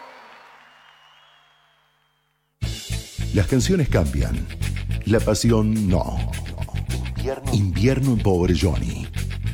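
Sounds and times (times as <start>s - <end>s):
audience applause: 0.0s - 2.2s
speech: 3.3s - 6.6s, 7.2s - 9.2s.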